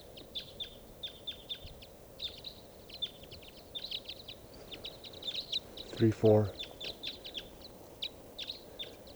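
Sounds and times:
type 5 bird flock calling: 0:02.2 - 0:09.1
speech: 0:06.0 - 0:06.6.

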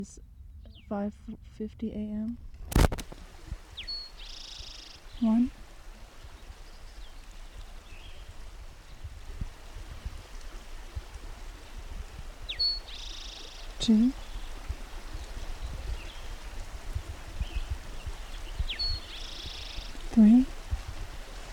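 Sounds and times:
speech: 0:00.0 - 0:00.3, 0:00.9 - 0:02.6, 0:05.2 - 0:05.6, 0:13.8 - 0:14.2
bird singing at dawn near a road: 0:00.0 - 0:01.4, 0:03.6 - 0:09.2, 0:10.8 - 0:20.6.

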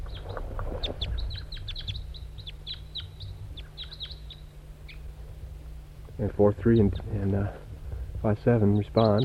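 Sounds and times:
wild bird call: 0:00.0 - 0:05.3, 0:08.0 - 0:09.2
speech: 0:06.2 - 0:07.6, 0:08.2 - 0:09.2.

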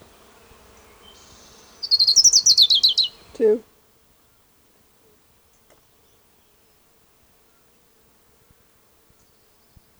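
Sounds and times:
ground warbler song: 0:00.6 - 0:03.6
speech: 0:03.4 - 0:03.7.

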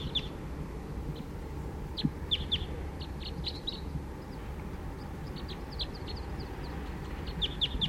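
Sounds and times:
wild bird singing: 0:00.0 - 0:00.4, 0:01.1 - 0:07.8.

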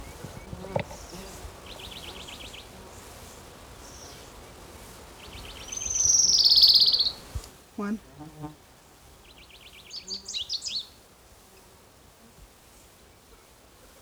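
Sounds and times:
orange-crowned warbler singing: 0:00.0 - 0:02.7, 0:05.2 - 0:07.4, 0:09.2 - 0:10.9
faint hiss: 0:00.0 - 0:14.0
speech: 0:07.8 - 0:08.6.

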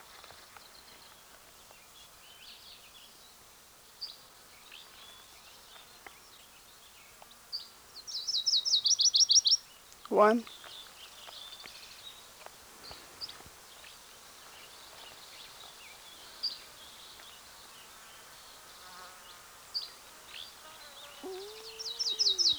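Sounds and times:
probable Virginia's warbler singing: 0:08.1 - 0:12.2, 0:19.8 - 0:22.5
speech: 0:10.2 - 0:10.5.

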